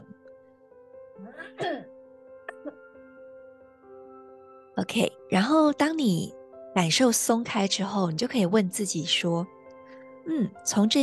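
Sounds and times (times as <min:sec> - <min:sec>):
speech: 0:01.2 - 0:01.9, 0:04.8 - 0:09.6, 0:10.3 - 0:11.0
throat clearing: 0:01.2 - 0:01.9, 0:02.5 - 0:02.8.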